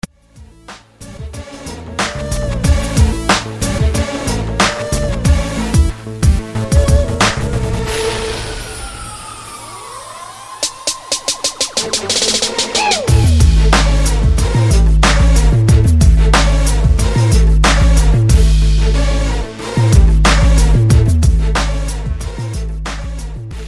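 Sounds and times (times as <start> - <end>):
music beat: 0.0 - 8.6, 10.0 - 23.6.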